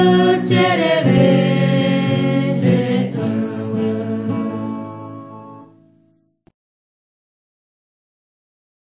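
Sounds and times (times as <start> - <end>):
Guarani Mbya songs: 0.0 - 5.4.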